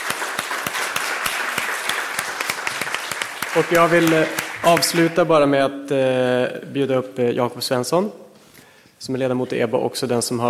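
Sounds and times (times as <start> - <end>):
audience applause: 0.0 - 5.2
speech: 3.6 - 8.2, 9.0 - 10.4.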